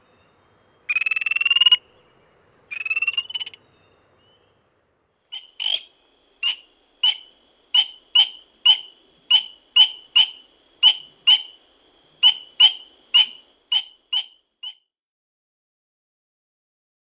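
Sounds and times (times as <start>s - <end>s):
spring peeper frog calls: 0.9s - 2.0s, 2.7s - 3.6s, 5.3s - 14.8s.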